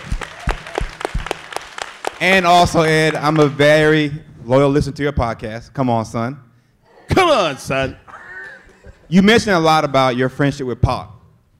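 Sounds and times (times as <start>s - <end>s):
audience applause: 0.0s - 3.6s
speech: 2.2s - 6.5s, 7.2s - 8.0s, 9.1s - 11.2s
laughter: 6.9s - 9.3s.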